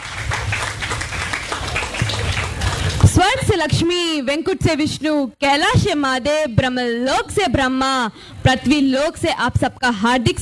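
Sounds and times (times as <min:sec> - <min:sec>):
audience clapping at a Hindi kavi sammelan poetry gathering: 0:00.0 - 0:03.2
speech: 0:03.2 - 0:10.4.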